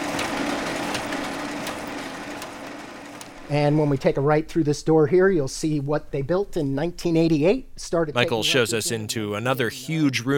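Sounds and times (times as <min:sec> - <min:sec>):
microfilm machine imaging fed documents: 0:00.0 - 0:04.0
speech: 0:03.5 - 0:10.3.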